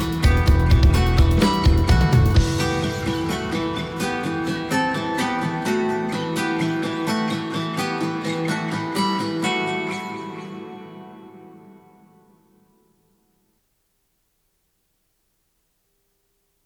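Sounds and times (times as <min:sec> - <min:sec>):
v7000 acoustic guitar: 0:00.0 - 0:13.1.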